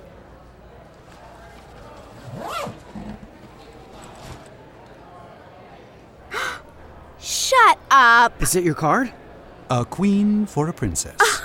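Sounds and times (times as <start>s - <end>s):
bag zipper pulled open during a magic trick: 2.0s - 4.5s
soft breaths: 6.2s - 6.8s
speech: 8.0s - 11.4s.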